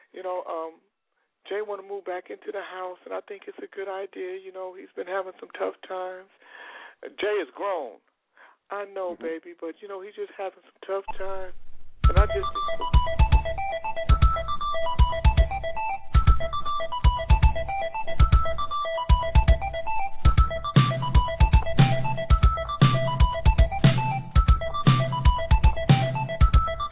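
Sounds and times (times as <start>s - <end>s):
speech: 0.1s - 8.1s, 8.7s - 14.1s
battle beat music playing: 11.1s - 26.9s.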